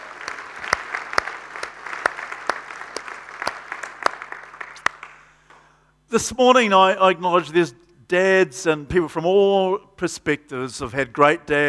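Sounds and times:
audience applause congratulating fathers: 0.0s - 5.3s
speech: 6.1s - 11.6s.

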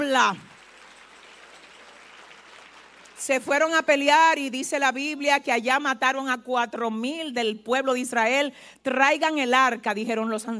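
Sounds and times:
speech: 0.1s - 0.5s, 3.2s - 10.5s
audience applause: 0.5s - 3.2s.

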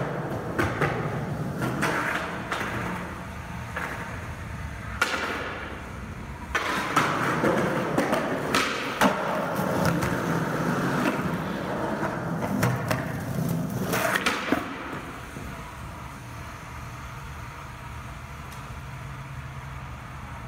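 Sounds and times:
skateboards landing or tipping with clacks and slaps: 0.0s - 15.7s
skateboard wheels rolling on pavement: 0.0s - 17.7s.

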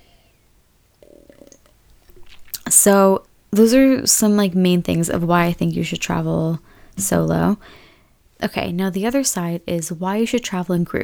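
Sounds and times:
sipping a drink and swallowing: 1.0s - 4.0s
speech: 2.8s - 7.8s, 8.4s - 11.0s.

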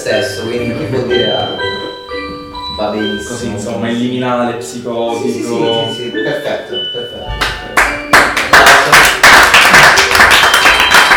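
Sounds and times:
speech: 0.0s - 1.4s, 2.8s - 7.6s
live comedy show audience clapping rhythmically: 7.4s - 11.1s.

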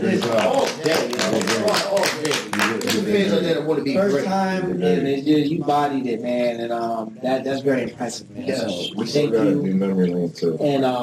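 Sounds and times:
round of applause: 0.0s - 3.2s
speech: 0.3s - 1.0s, 3.7s - 11.0s.

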